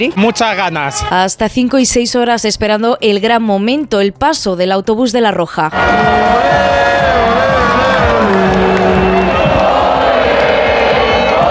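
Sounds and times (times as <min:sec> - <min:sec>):
speech: 0:00.0 - 0:06.6
crowd singing: 0:05.7 - 0:11.5.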